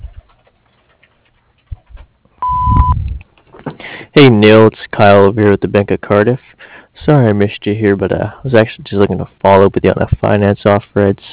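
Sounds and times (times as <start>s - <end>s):
voicemail tone beep: 2.4s - 3.0s
speech: 4.2s - 11.3s.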